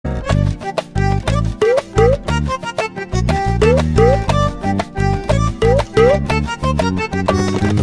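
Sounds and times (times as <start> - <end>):
background music tone: 0.1 - 7.8.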